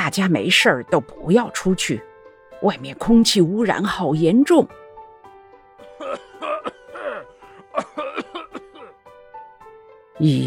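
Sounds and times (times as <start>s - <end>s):
speech: 0.1s - 4.8s, 10.2s - 10.4s
coughing: 6.0s - 9.0s.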